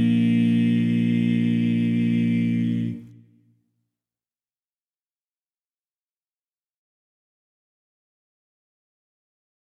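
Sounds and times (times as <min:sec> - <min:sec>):
barbershop lead vocal learning track: 0:00.0 - 0:03.3.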